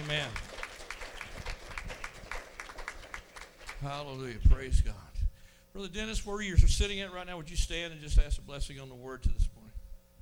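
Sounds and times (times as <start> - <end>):
audience clapping hands: 0.0 - 4.3
speech: 0.1 - 0.5, 3.8 - 5.1, 5.8 - 9.5.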